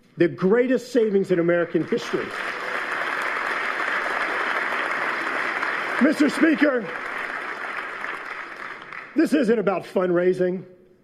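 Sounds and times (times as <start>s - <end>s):
speech: 0.2s - 2.6s, 6.0s - 7.1s, 9.2s - 10.7s
crowd applauding: 1.4s - 9.5s.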